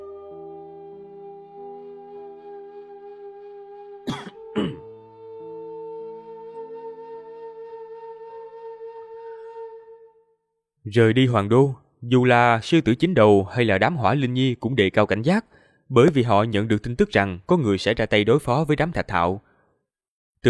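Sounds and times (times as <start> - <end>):
sustained musical tones: 0.0 - 10.1
person with a sore throat coughing: 4.1 - 4.9
speech: 4.6 - 4.8, 10.9 - 19.5.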